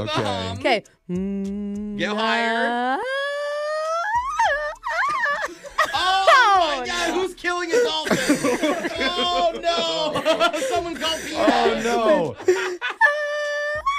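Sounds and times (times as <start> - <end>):
speech: 0.0 - 3.2, 6.6 - 13.1
person imitating a crying baby: 1.1 - 7.1, 13.0 - 13.9
people chuckling and snickering: 4.8 - 13.5.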